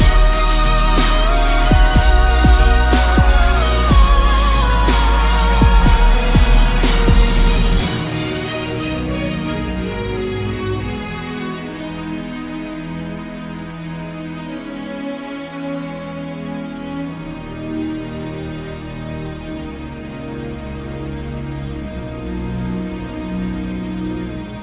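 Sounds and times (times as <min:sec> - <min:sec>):
dubstep remix: 0:00.0 - 0:11.7.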